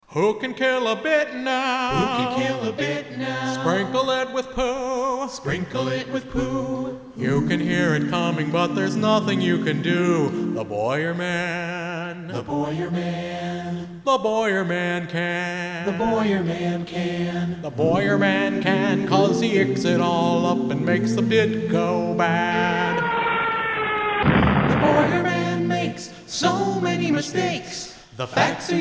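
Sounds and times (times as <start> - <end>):
a cappella singing: 0.0 - 23.4, 24.2 - 28.7.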